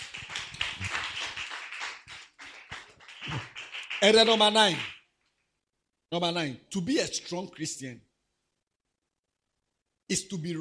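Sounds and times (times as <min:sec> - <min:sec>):
group clapping: 0:00.0 - 0:05.0
speech: 0:03.3 - 0:04.9, 0:06.1 - 0:08.1, 0:10.1 - 0:10.5.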